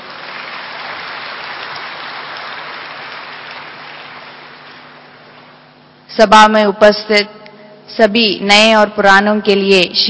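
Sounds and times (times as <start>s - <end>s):
audience applause welcoming a guest at a gathering: 0.0s - 5.4s
speech: 6.1s - 10.0s.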